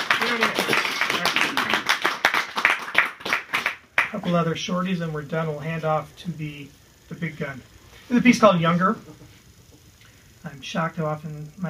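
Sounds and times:
single person hand clapping: 0.0s - 4.3s
speech: 4.2s - 9.4s, 10.5s - 11.6s.

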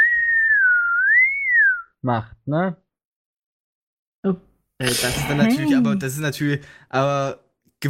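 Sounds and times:
person whistling a high tone mimicking tinnitus ringing: 0.0s - 2.0s
speech: 2.0s - 2.8s, 4.2s - 7.8s.

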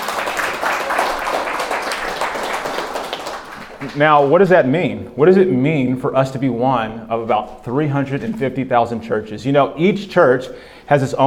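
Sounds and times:
audience clapping: 0.0s - 4.9s
speech: 3.8s - 11.2s.

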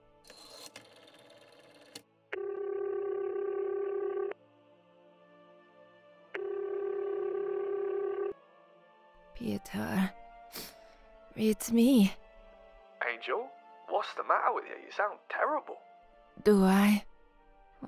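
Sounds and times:
telephone ringing tones: 2.3s - 4.4s, 6.4s - 8.4s
speech: 9.6s - 10.2s, 11.4s - 12.2s, 14.5s - 17.1s.

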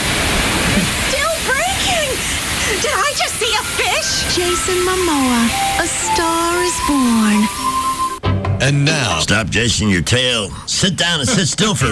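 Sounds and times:
gushing water sound effect: 0.0s - 8.2s
speech: 4.4s - 7.6s, 8.6s - 11.9s.

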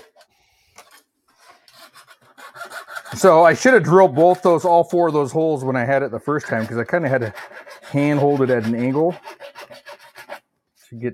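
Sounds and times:
file rasping off rough shards around drilled holes: 1.4s - 5.2s, 6.2s - 10.4s
speech: 3.1s - 9.3s, 10.9s - 11.1s.

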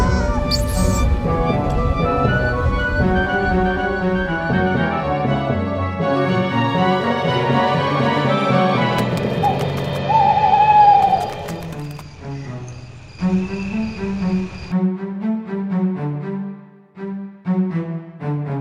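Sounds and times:
sustained musical tones: 0.0s - 18.6s
owl hooting: 9.0s - 12.0s.

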